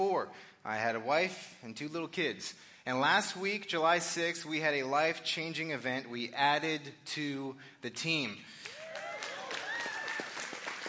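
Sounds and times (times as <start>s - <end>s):
speech: 0.0s - 8.7s
audience clapping: 8.6s - 10.8s.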